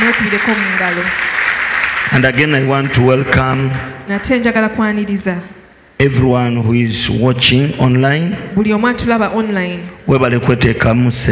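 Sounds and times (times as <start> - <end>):
audience applause: 0.0 - 3.8
speech: 0.1 - 1.4, 2.0 - 11.3.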